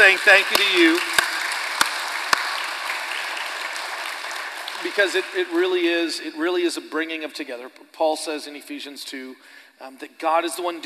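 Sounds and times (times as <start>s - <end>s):
speech: 0.0s - 1.1s, 4.8s - 10.8s
hand clapping applause: 0.0s - 5.9s.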